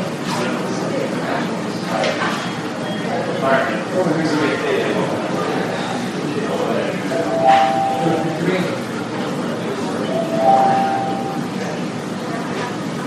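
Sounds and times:
murmur of overlapping voices in a hospital emergency room: 0:00.0 - 0:13.0
short clear electronic tones: 0:07.2 - 0:08.4, 0:10.1 - 0:11.5.

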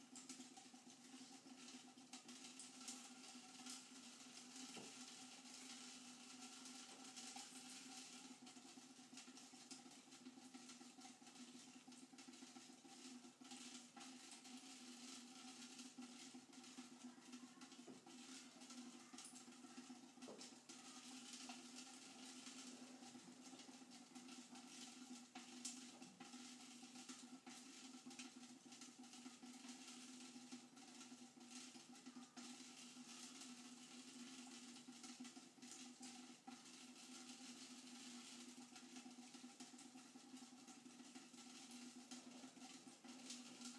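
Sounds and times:
water dripping onto tinfoil: 0:00.0 - 0:43.7.

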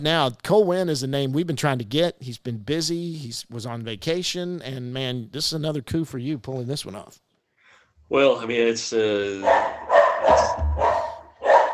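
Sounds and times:
speech: 0:00.0 - 0:07.2, 0:08.1 - 0:10.6
dogs barking: 0:09.4 - 0:11.7.

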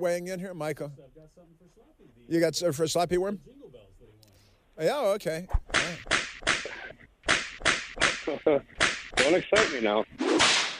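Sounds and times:
speech: 0:00.0 - 0:03.8, 0:04.8 - 0:10.6
whip cracks: 0:05.5 - 0:10.7.

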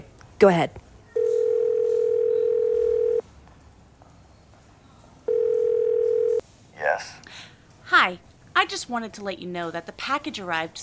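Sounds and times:
speech: 0:00.4 - 0:00.8, 0:08.1 - 0:10.8
steady mid-pitched telephone tone: 0:01.2 - 0:03.2, 0:05.3 - 0:06.4.

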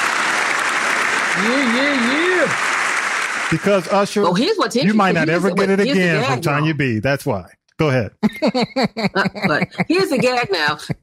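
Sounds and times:
applause: 0:00.0 - 0:06.6
speech: 0:01.4 - 0:02.7, 0:03.5 - 0:11.0
laughter: 0:03.5 - 0:11.0.

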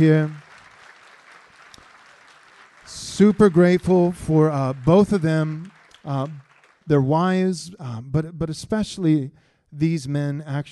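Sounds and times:
speech: 0:00.0 - 0:00.4, 0:02.9 - 0:10.6
audience applause: 0:00.0 - 0:07.0.

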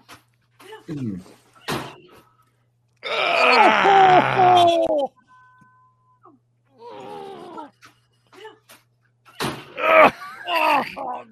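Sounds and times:
person groaning and yelling in pain: 0:03.0 - 0:05.1, 0:06.8 - 0:07.7, 0:09.8 - 0:11.3.

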